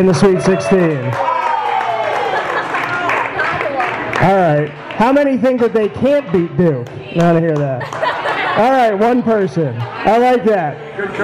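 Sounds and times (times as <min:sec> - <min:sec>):
speech: 0:00.0 - 0:01.4, 0:04.2 - 0:08.0, 0:08.6 - 0:11.2
audience clapping and cheering: 0:00.2 - 0:08.2
laughter: 0:02.1 - 0:03.7, 0:07.5 - 0:10.0.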